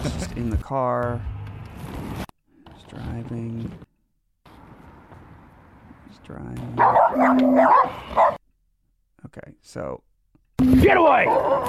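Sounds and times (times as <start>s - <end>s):
speech: 0.4s - 1.4s, 2.9s - 3.8s, 6.3s - 8.4s, 9.2s - 11.6s
dog barking: 6.8s - 8.4s, 11.2s - 11.6s.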